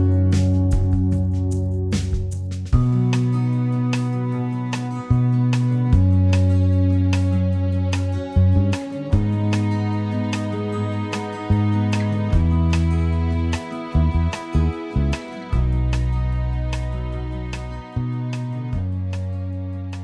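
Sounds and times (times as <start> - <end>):
karaoke backing music chorus bridge: 0.0 - 20.0.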